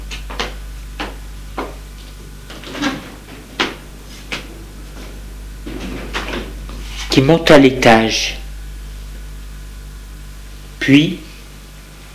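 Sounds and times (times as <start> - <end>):
elevator door opening: 2.2 - 7.4
speech: 7.2 - 8.4, 10.9 - 11.2.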